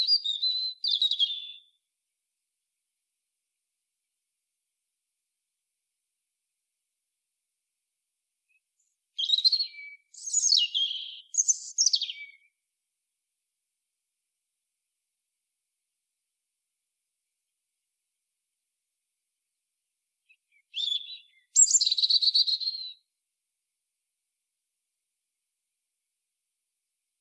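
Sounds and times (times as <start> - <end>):
European robin song: 0.0 - 1.9, 8.4 - 12.7, 20.1 - 23.2.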